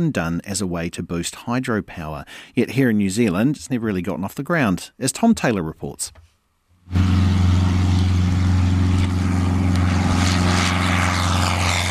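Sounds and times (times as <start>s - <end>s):
speech: 0.0s - 6.3s, 6.9s - 7.4s
propeller aircraft engine droning: 6.8s - 11.8s.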